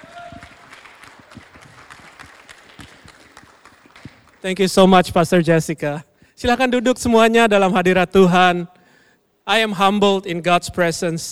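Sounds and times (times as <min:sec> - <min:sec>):
audience applauding: 0:00.0 - 0:04.5
speech: 0:04.4 - 0:08.7, 0:09.5 - 0:11.3.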